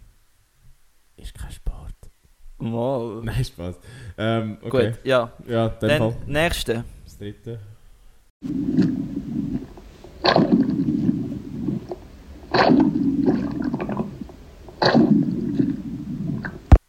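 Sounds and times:
speech: 0:01.2 - 0:07.7, 0:08.4 - 0:08.9
underwater scuba diving sounds: 0:08.4 - 0:16.8.

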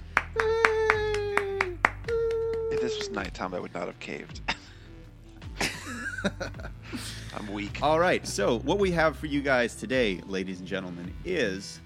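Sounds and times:
round of applause with sharp evenly spaced claps: 0:00.0 - 0:03.6
speech: 0:02.9 - 0:04.6, 0:06.2 - 0:11.8
laughter: 0:05.6 - 0:07.6.

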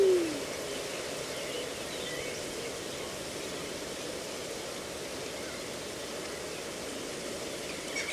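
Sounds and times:
reedbed hiss at Slapton Ley: 0:00.0 - 0:08.0.

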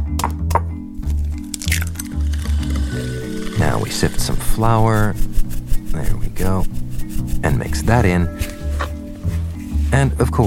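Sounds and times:
music: 0:00.0 - 0:10.4
eggs cracking into a butter and sugar mixture: 0:01.0 - 0:06.0
speech: 0:03.6 - 0:05.3, 0:06.0 - 0:08.6, 0:09.9 - 0:10.4.

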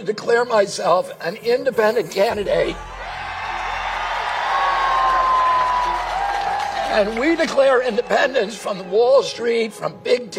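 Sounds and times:
speech: 0:00.0 - 0:03.0, 0:06.9 - 0:10.3
large rally crowd cheering: 0:02.3 - 0:10.3.

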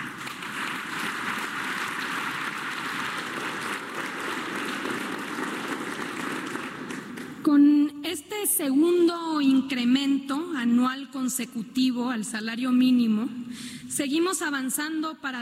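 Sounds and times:
audience applause: 0:00.0 - 0:07.5
speech: 0:08.6 - 0:15.3.

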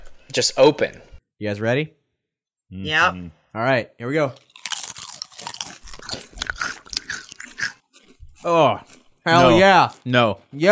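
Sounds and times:
speech: 0:00.3 - 0:02.0, 0:02.7 - 0:04.5, 0:08.4 - 0:10.7
crunching and chewing of a spicy snack: 0:04.4 - 0:10.6.

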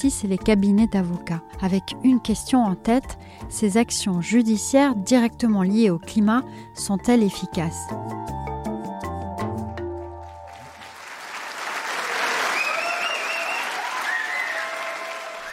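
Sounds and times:
speech: 0:00.0 - 0:08.5
music: 0:00.0 - 0:11.3
long historic applause in courtroom: 0:10.3 - 0:15.5
scattered cheers: 0:11.8 - 0:15.5.

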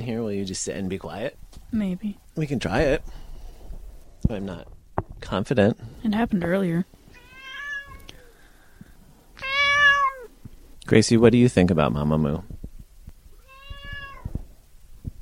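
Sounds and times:
speech: 0:00.0 - 0:03.2, 0:04.2 - 0:07.0, 0:10.9 - 0:12.5
cat meowing: 0:07.1 - 0:08.3, 0:09.4 - 0:10.3, 0:13.3 - 0:14.4.

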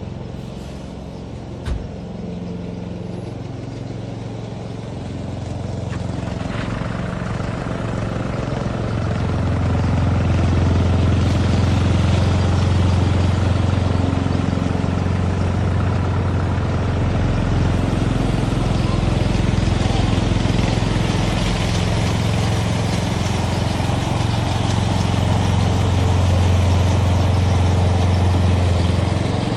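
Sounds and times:
lawn mower engine drone: 0:00.0 - 0:29.5.

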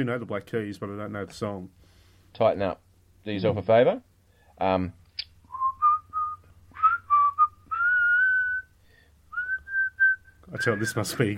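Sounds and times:
speech: 0:00.0 - 0:05.0, 0:10.5 - 0:11.3
person whistling a melody: 0:05.5 - 0:08.7, 0:09.3 - 0:10.4.

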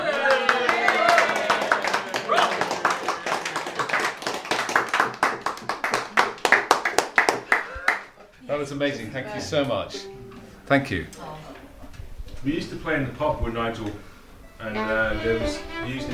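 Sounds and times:
audience applause: 0:00.0 - 0:08.2
speech: 0:08.6 - 0:11.3, 0:12.4 - 0:16.1.

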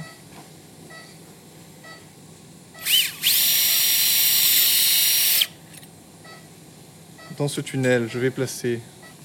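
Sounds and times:
high-pitched surgical drill boring a tunnel in bone: 0:02.8 - 0:05.6
speech: 0:07.4 - 0:09.0.

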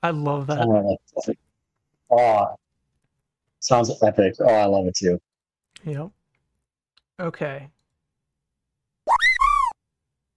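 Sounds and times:
speech: 0:00.0 - 0:01.4, 0:02.1 - 0:02.6, 0:03.6 - 0:06.2, 0:07.2 - 0:07.8
chocobo cry from a video game: 0:09.1 - 0:09.8.

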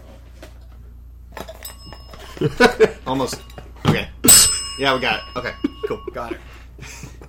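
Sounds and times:
steady low hum: 0:01.4 - 0:06.6
small news bell ringing: 0:01.5 - 0:06.6
speech: 0:02.4 - 0:04.2, 0:04.8 - 0:07.1.

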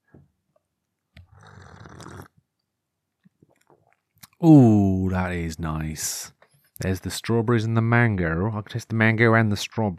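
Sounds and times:
sipping hot tea: 0:01.3 - 0:02.4
speech: 0:04.4 - 0:09.9.

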